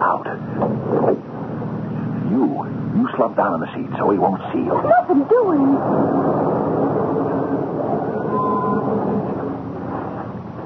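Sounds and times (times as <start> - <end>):
car approaching and slowing down: 0.0 - 10.6
speech: 3.2 - 7.2.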